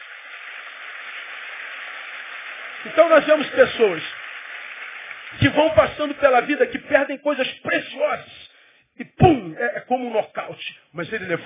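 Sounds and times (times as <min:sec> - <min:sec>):
audience applauding loudly: 0:00.0 - 0:07.4
speech: 0:02.8 - 0:04.2, 0:05.3 - 0:08.4, 0:09.0 - 0:11.4.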